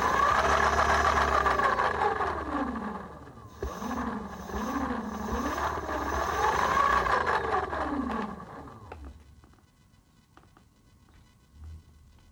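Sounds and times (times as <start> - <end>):
fatbike motor: 0.0 - 9.3.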